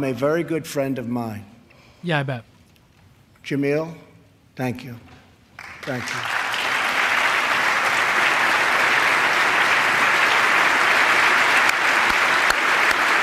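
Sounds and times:
speech: 0.0 - 2.5, 3.4 - 5.2, 5.8 - 6.4
audience applause: 5.6 - 13.2.

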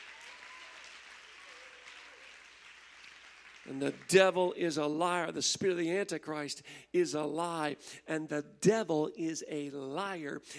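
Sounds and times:
audience clapping hands: 0.0 - 4.6
speech: 3.7 - 10.5.

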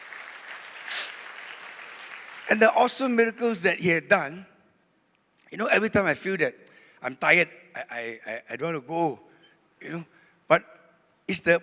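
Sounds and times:
audience clapping hands: 0.0 - 2.7
speech: 2.5 - 4.5, 5.5 - 11.6.

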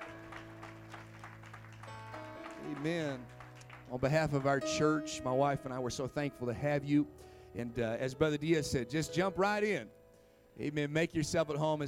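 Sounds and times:
audience clapping in welcome: 0.0 - 4.7
speech: 2.7 - 10.0, 10.6 - 11.8.

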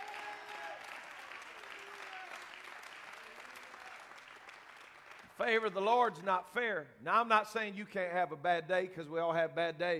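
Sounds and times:
audience clapping: 0.0 - 6.2
speech: 5.4 - 9.9.

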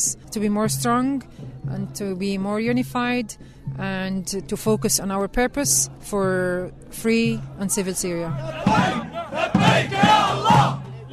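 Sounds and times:
speech: 0.1 - 9.0
protest crowd chanting: 7.4 - 11.1.

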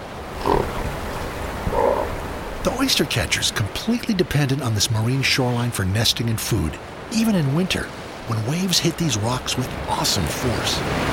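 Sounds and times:
harbor seals snorting: 0.3 - 2.3
speech: 2.6 - 11.1.

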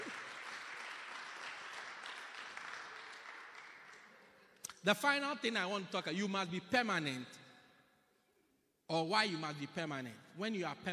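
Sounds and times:
crowd clapping: 0.0 - 4.7
speech: 4.8 - 7.4, 8.9 - 10.9.

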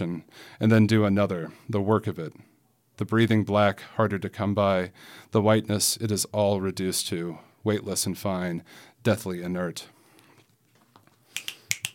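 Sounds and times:
speech: 0.0 - 10.0
finger snapping as applause: 11.3 - 11.9.

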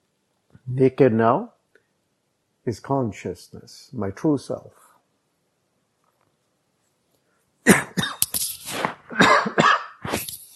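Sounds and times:
speech: 0.7 - 1.6, 2.6 - 4.8
person coughing from a dry throat: 7.7 - 10.5.

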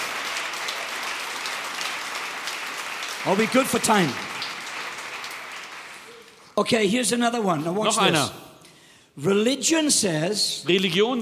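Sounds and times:
audience hand clapping: 0.0 - 7.0
speech: 3.2 - 4.3, 6.6 - 8.4, 9.2 - 11.2.

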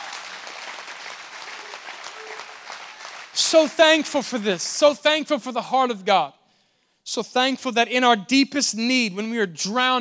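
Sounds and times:
audience clapping hands: 0.0 - 5.1
speech: 3.4 - 6.4, 7.1 - 9.9.

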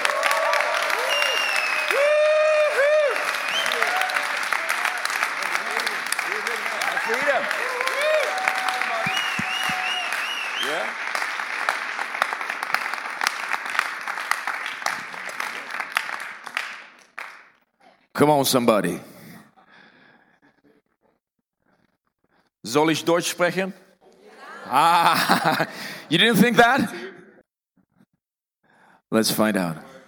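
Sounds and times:
audience cheers and whoops: 0.0 - 11.0
sustained applause from a large audience: 0.0 - 17.6
laughter: 5.4 - 8.0, 24.1 - 27.2
speech: 18.2 - 19.1, 22.8 - 23.8, 24.7 - 27.0, 29.2 - 29.9.

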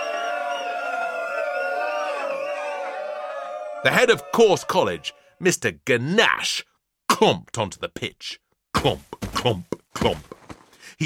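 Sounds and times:
team cheering: 0.0 - 5.3
speech: 3.8 - 11.0.

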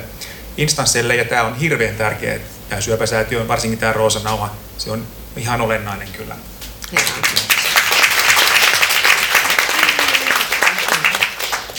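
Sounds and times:
speech: 0.6 - 7.6
audience applause: 6.9 - 11.7.

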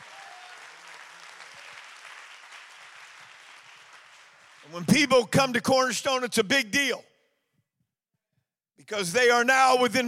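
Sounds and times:
audience clapping hands: 0.0 - 5.6
speech: 4.6 - 7.1, 8.9 - 10.0.

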